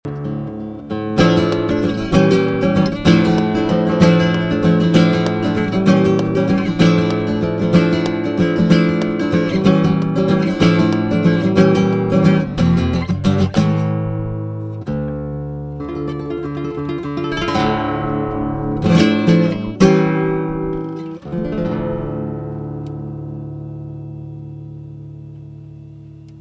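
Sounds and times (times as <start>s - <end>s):
Latin flamenco guitar: 0.1s - 26.3s.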